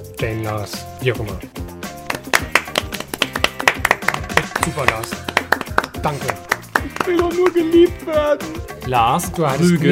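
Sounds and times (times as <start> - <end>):
speech: 0.0 - 1.7, 4.7 - 5.4, 6.0 - 9.9
scattered clapping from a small audience at a German comedy show: 2.0 - 7.8.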